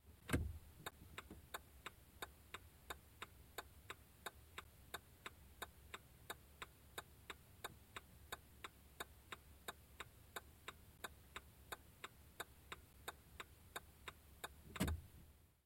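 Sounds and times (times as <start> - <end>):
car turn signal clicking: 0.2 - 15.1.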